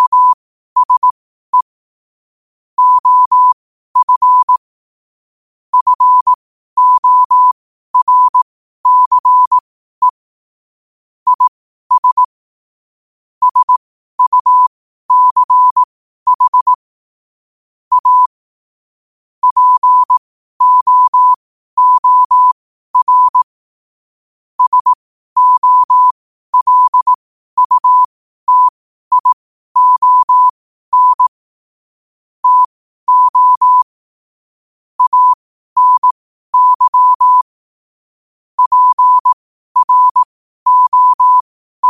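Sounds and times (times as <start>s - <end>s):
morse code at 5 wpm: 0.0s - 1.7s, 2.8s - 4.6s, 5.8s - 10.2s, 11.3s - 12.3s, 13.4s - 16.8s, 17.9s - 18.3s, 19.4s - 23.5s, 24.6s - 31.4s, 32.4s - 33.9s, 35.0s - 37.6s, 38.6s - 41.8s.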